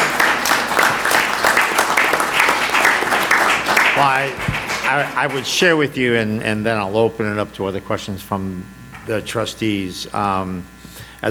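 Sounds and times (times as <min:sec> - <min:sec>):
audience applause: 0:00.0 - 0:05.9
speech: 0:04.0 - 0:11.2.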